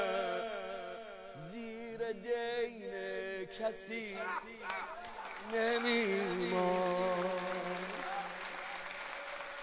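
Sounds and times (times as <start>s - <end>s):
person chanting at a religious gathering: 0.0s - 9.6s
speech: 2.1s - 8.0s
crowd clapping at a religious gathering: 4.4s - 9.6s.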